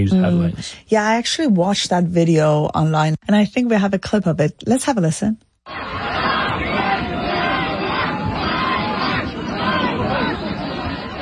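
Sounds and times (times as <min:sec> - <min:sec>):
speech: 0:00.0 - 0:06.0
crowd jeering and shouting: 0:05.7 - 0:11.1.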